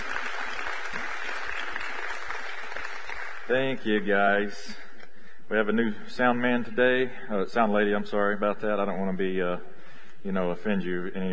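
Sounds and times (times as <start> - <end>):
audience applause: 0.0 - 3.8
speech: 3.5 - 4.8, 5.5 - 11.3.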